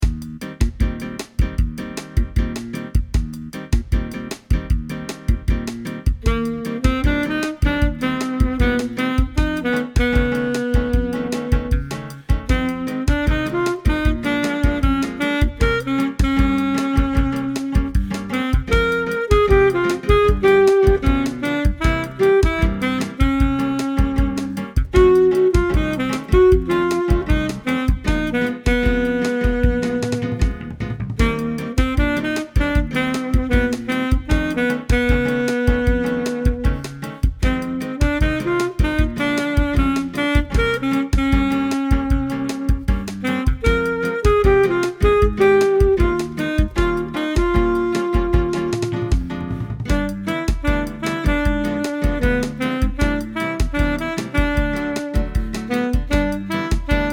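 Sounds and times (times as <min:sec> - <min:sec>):
saxophone: 0:00.6 - 0:57.1.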